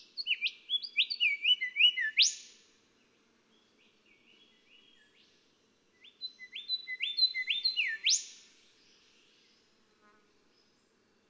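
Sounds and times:
golden whistler singing: 0.3 - 2.4, 6.3 - 8.3.

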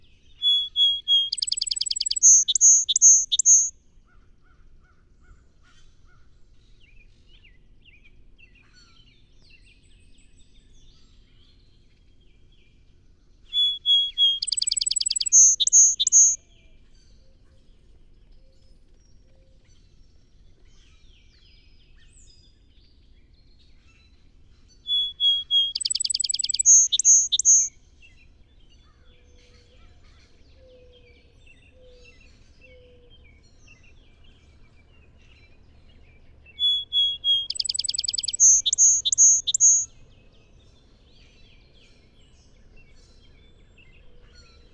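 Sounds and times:
song sparrow song: 0.4 - 3.7, 13.5 - 16.4, 24.9 - 27.7, 36.5 - 39.9.

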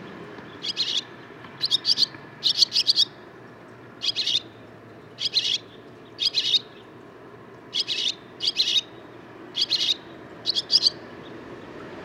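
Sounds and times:
barn swallow scratchy twittering song: 0.5 - 3.2, 4.0 - 6.9, 7.7 - 11.3.

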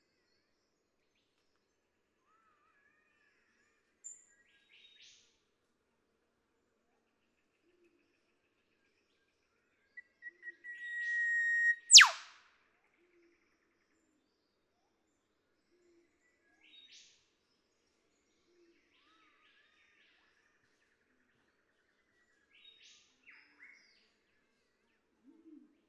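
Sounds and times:
Eastern whipbird whip-crack song: 10.4 - 12.3.

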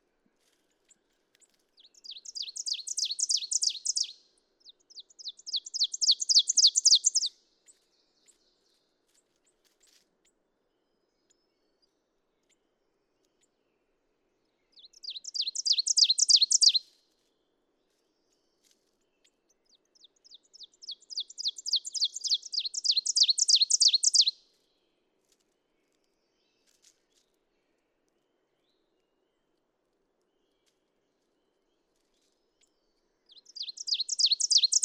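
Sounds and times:
ovenbird song: 0.7 - 25.0, 25.6 - 34.8.

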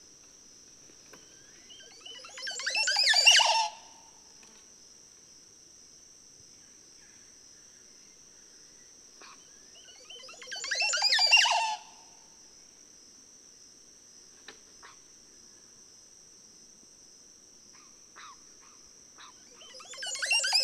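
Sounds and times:
Montezuma oropendola calling: 1.6 - 3.8, 9.2 - 12.0, 19.2 - 20.6.

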